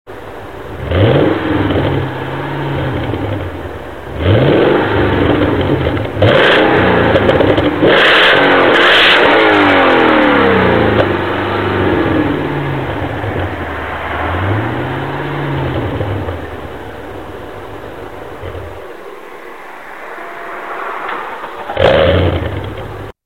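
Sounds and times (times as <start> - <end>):
vehicle exhaust: 0.3 - 23.2.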